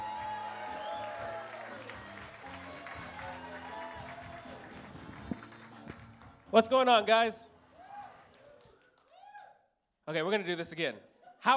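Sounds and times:
comedy show audience whooping: 0:00.0 - 0:04.8, 0:07.8 - 0:09.6
comedy show audience clapping: 0:00.0 - 0:07.0
speech: 0:06.5 - 0:07.5, 0:10.1 - 0:11.5.

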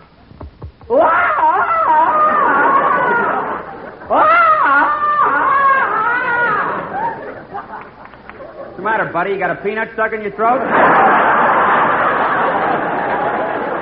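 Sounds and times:
man bellowing jungle-style yodel at a zoo: 0:00.9 - 0:06.9
laughter: 0:00.9 - 0:09.1, 0:10.5 - 0:13.8
speech: 0:09.0 - 0:11.3.

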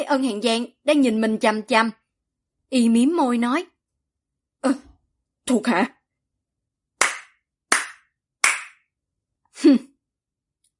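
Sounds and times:
speech: 0:00.0 - 0:02.0, 0:02.7 - 0:03.7, 0:04.6 - 0:04.9, 0:05.5 - 0:06.0, 0:09.6 - 0:09.9
hand clapping by a character in a xianxia story: 0:07.0 - 0:08.9.

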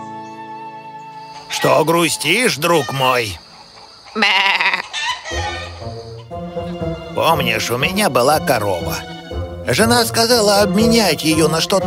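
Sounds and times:
speech: 0:01.5 - 0:03.4, 0:04.2 - 0:04.6, 0:07.2 - 0:11.8
sheep bleating: 0:04.2 - 0:05.0.

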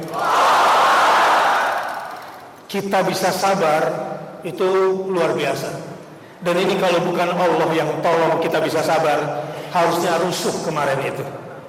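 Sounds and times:
crowd at a peaceful protest rally shouting takbir: 0:00.1 - 0:02.3
speech: 0:02.7 - 0:11.4.

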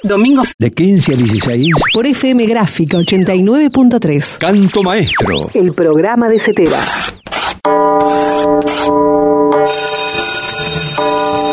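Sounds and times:
speech: 0:00.0 - 0:11.5
school bell ringing: 0:07.7 - 0:11.5.

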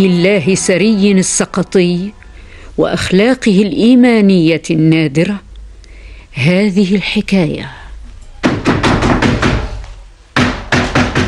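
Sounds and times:
speech: 0:00.0 - 0:02.2, 0:02.8 - 0:05.4, 0:06.4 - 0:07.8
knocking on a door: 0:08.4 - 0:09.8, 0:10.4 - 0:11.2.

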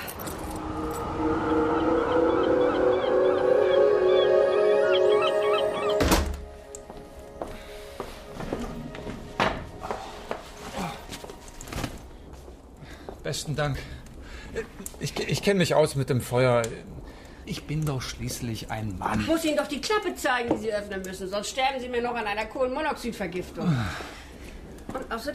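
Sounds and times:
keys jingling as someone searches for a key: 0:00.0 - 0:00.6
steady tonal backdrop: 0:00.0 - 0:18.9
speech: 0:13.4 - 0:14.0, 0:14.6 - 0:24.1.

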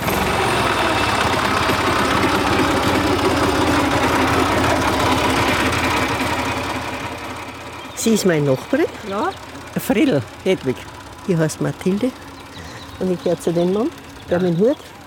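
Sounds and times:
tractor engine running: 0:00.0 - 0:15.0
speech: 0:08.0 - 0:12.2, 0:13.0 - 0:15.0.

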